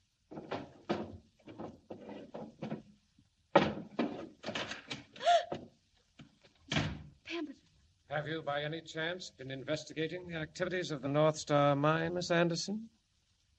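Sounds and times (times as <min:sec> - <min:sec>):
wooden desk drawers opening and shutting: 0:00.3 - 0:03.0, 0:03.6 - 0:05.1
speech: 0:08.1 - 0:13.0.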